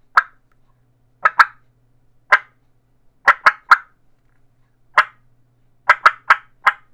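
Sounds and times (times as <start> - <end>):
turkey clucking: 0.2 - 0.4, 1.2 - 1.6, 2.3 - 2.5, 3.3 - 3.9, 5.0 - 5.2, 5.9 - 6.9.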